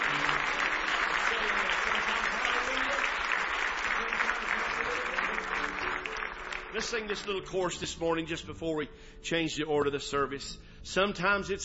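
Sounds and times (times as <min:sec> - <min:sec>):
audience applause: 0:00.0 - 0:07.5
speech: 0:06.8 - 0:11.6.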